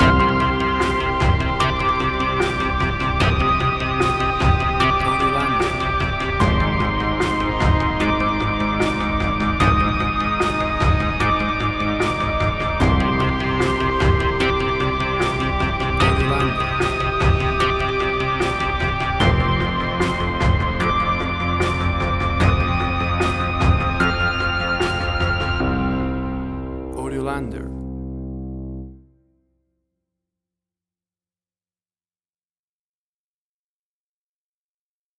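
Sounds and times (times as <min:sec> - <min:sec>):
big atmospheric tension: 0:00.0 - 0:28.2.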